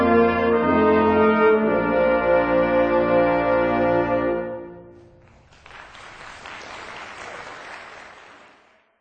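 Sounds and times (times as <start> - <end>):
hornpipe tune: 0.0 - 5.2.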